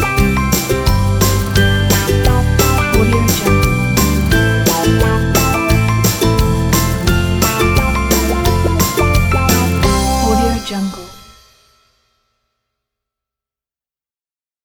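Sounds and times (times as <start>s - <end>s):
happy little game music: 0.0s - 11.2s.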